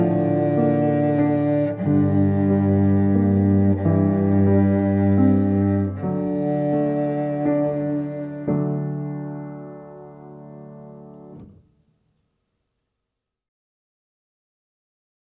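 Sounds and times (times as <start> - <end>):
cello: 0.0 - 11.7.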